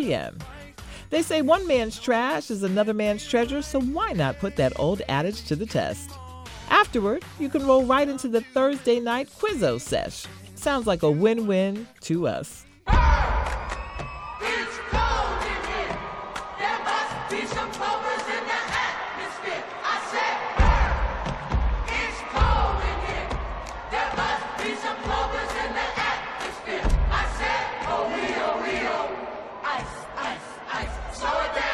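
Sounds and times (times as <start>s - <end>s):
speech: 0.0s - 13.6s
cheering and whoops: 12.9s - 17.1s
group of voices shouting a rhythmic cheerleading chant: 12.9s - 31.7s.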